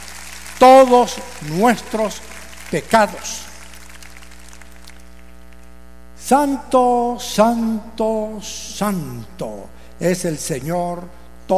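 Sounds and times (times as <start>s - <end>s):
audience applause: 0.0s - 5.4s
speech: 0.6s - 3.5s, 6.3s - 11.5s.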